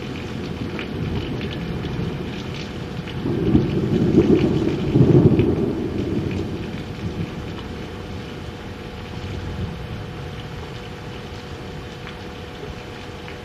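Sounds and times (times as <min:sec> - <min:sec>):
thunder: 0:00.4 - 0:07.8.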